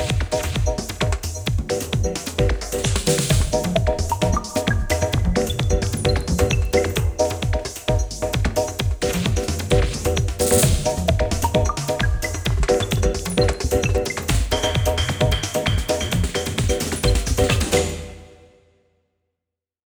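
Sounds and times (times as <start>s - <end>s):
electric archaic loops: 0.0s - 18.4s.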